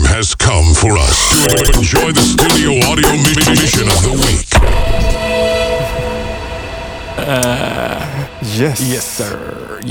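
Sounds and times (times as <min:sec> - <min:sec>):
speech: 0:00.2 - 0:04.5, 0:07.3 - 0:09.8
podcast intro jingle: 0:02.7 - 0:09.8.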